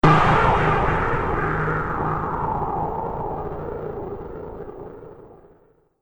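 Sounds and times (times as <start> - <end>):
futuristic wind explosion battle sound effect: 0.0 - 5.6.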